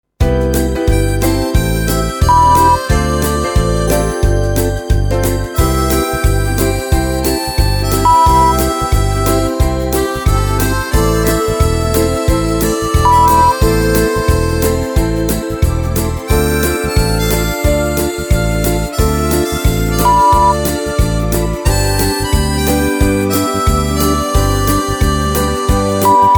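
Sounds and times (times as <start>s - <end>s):
Christmas swing on harmonica: 0.2s - 26.3s.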